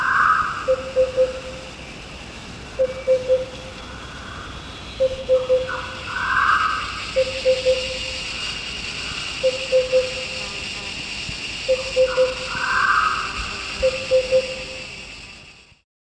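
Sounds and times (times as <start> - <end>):
Sunda lesser cuckoo calling: 0.0 - 1.8, 2.7 - 8.4, 9.4 - 10.4, 11.7 - 14.9
steady mechanical hum: 0.0 - 15.8.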